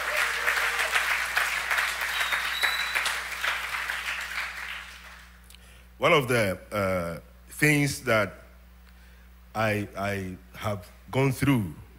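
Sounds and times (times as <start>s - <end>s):
audience clapping: 0.0s - 5.4s
speech: 6.0s - 8.4s, 9.6s - 11.8s.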